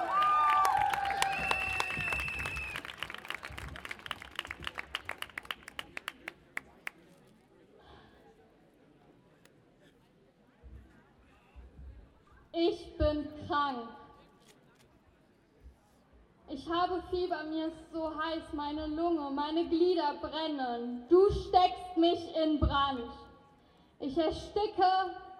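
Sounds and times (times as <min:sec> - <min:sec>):
crowd applauding loudly: 0:00.0 - 0:07.0
shrill whistles: 0:00.9 - 0:02.9
low murmur of voices: 0:03.2 - 0:25.3
speech: 0:13.2 - 0:14.0, 0:16.6 - 0:23.2, 0:24.0 - 0:25.2.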